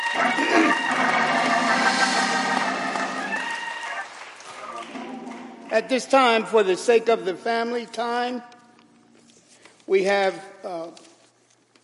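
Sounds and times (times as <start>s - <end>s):
audience hand clapping in praise: 0.0s - 6.4s
speech: 5.7s - 8.5s, 9.9s - 11.1s.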